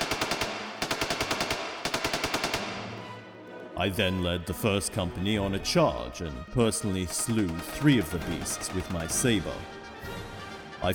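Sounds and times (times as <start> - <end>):
Gatling gun firing in rapid bursts: 0.0 - 3.0, 7.4 - 9.5
speech: 3.8 - 9.8, 10.8 - 10.9.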